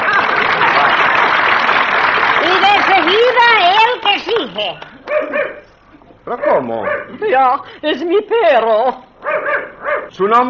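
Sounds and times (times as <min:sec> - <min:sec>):
audience applause: 0:00.0 - 0:04.8
speech: 0:04.4 - 0:05.5, 0:06.3 - 0:10.4.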